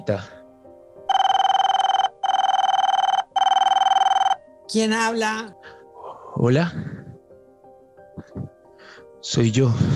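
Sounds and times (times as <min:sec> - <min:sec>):
speech: 0:00.0 - 0:00.4, 0:04.7 - 0:05.8, 0:06.4 - 0:06.9, 0:09.2 - 0:09.9
telephone ringing with buzzy trilling: 0:01.1 - 0:04.4.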